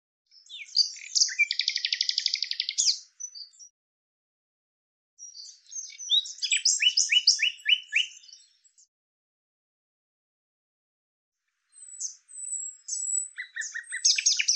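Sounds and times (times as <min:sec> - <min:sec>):
bird singing buzzy chirps: 0:00.3 - 0:03.7, 0:05.2 - 0:08.9, 0:11.7 - 0:14.5.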